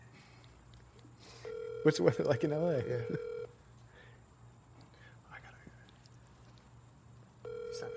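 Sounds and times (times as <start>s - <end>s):
outgoing phone call ring tone: 1.4s - 3.6s, 7.4s - 7.9s
speech: 1.8s - 3.4s
faint whispery noise: 4.9s - 6.2s.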